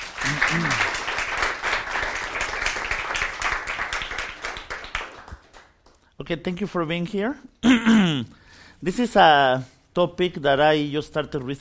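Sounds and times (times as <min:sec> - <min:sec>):
audience applause: 0:00.0 - 0:05.8
person cheering: 0:00.2 - 0:01.0
speech: 0:06.2 - 0:11.5.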